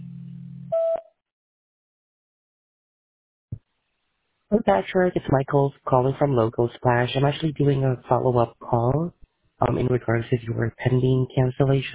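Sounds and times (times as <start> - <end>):
electronic hum: 0.0 - 1.0
answering machine beep: 0.7 - 1.1
speech: 4.5 - 11.9.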